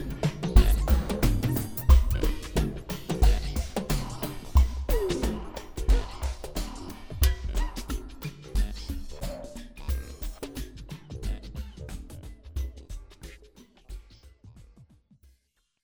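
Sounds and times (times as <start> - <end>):
burping groove: 0.0 - 7.6.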